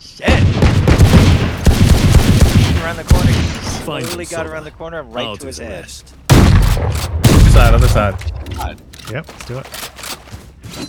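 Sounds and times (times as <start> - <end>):
rapid video game gunfire: 0.3 - 3.8, 6.3 - 8.1
speech: 3.9 - 9.9.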